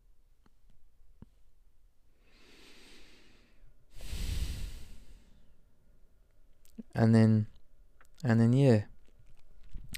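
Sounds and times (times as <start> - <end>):
deep breath: 2.1 - 5.6
speech: 7.0 - 7.5, 8.2 - 8.9.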